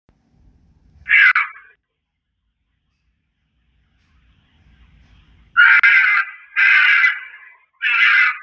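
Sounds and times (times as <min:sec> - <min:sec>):
fox giving harsh hoarse screams and a brief yelp: 0:01.1 - 0:01.8, 0:05.6 - 0:08.4.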